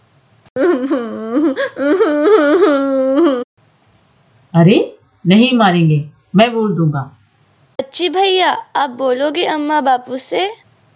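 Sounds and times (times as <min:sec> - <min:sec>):
girl crying loudly: 0:00.6 - 0:03.5
speech: 0:00.8 - 0:02.9, 0:04.6 - 0:07.2, 0:08.0 - 0:10.6.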